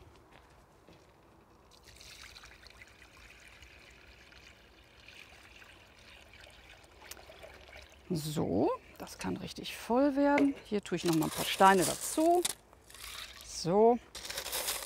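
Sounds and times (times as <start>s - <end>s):
water being poured into plant container: 1.7s - 8.3s, 12.9s - 13.6s
speech: 8.1s - 12.6s, 13.6s - 14.2s.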